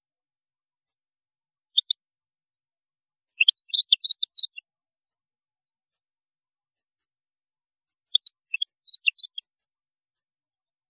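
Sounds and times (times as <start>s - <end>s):
European goldfinch chirping and twittering: 3.4s - 4.6s, 8.1s - 9.4s.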